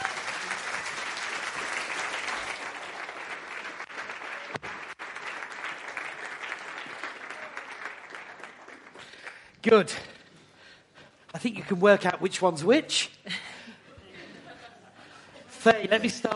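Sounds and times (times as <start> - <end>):
audience applause welcoming two guests onto a stage: 0.0 - 9.6
speech: 9.6 - 10.1, 11.4 - 13.2, 15.6 - 16.3
laughter: 13.3 - 16.2.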